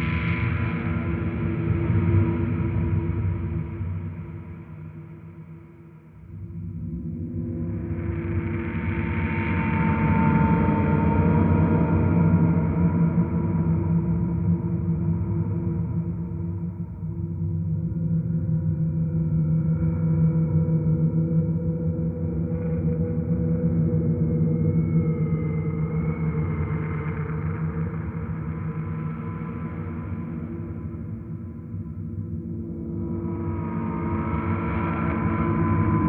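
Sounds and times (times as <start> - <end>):
creepy dreamy nostalgic dark ambient music: 0.0 - 36.0.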